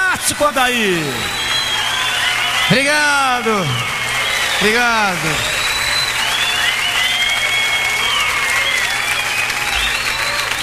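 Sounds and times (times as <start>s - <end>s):
audience applause: 0.0s - 10.6s
speech: 0.2s - 1.6s, 2.7s - 3.9s, 4.6s - 5.5s
faint gliding whistling tones: 1.1s - 10.6s.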